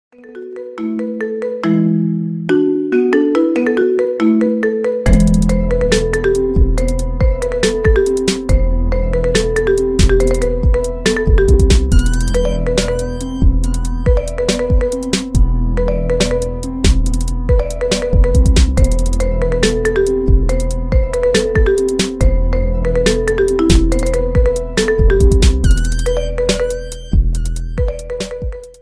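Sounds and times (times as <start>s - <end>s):
marimba ringtone remix: 0.2s - 16.7s, 17.5s - 27.2s, 27.8s - 28.8s.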